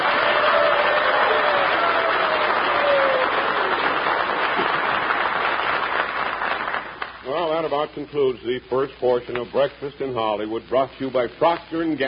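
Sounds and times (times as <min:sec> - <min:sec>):
audience cheering and applauding: 0:00.0 - 0:07.2
speech: 0:07.7 - 0:12.0.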